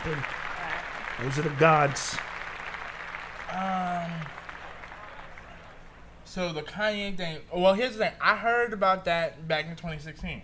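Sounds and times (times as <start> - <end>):
audience clapping: 0.0 - 6.2
voiced cheer: 0.0 - 6.2
speech: 0.1 - 0.4, 1.2 - 2.3, 3.5 - 4.4, 6.3 - 10.4.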